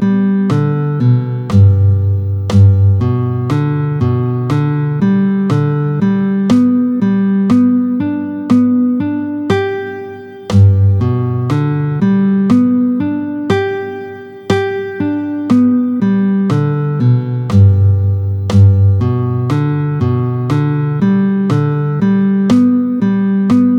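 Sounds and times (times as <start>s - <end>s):
G major arpeggios played with a pick at tempo 60: 0.0s - 23.7s.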